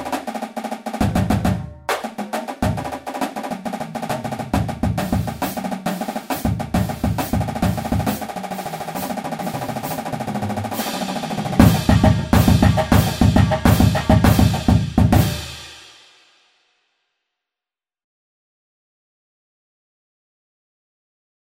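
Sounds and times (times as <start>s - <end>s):
drum beat: 0.0s - 16.2s.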